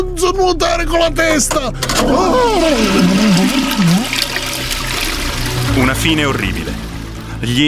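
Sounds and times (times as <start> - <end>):
speech: 0.2 - 4.1, 5.8 - 6.8, 7.4 - 7.6
toilet flushing: 1.8 - 7.6
wavering warbling tone: 1.9 - 7.2.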